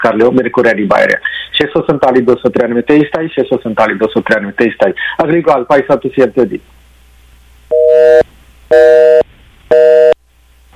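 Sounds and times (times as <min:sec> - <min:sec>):
speech: 0:00.0 - 0:06.8, 0:08.0 - 0:09.8
telephone busy signal after a caller's line drops: 0:07.7 - 0:10.2.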